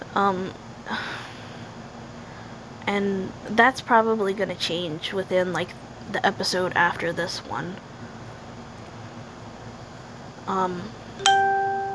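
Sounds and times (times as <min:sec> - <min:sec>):
faint hum: 0:00.0 - 0:11.9
speech: 0:00.2 - 0:01.2, 0:02.9 - 0:07.9, 0:10.5 - 0:11.3
phone notification ding: 0:11.2 - 0:11.9.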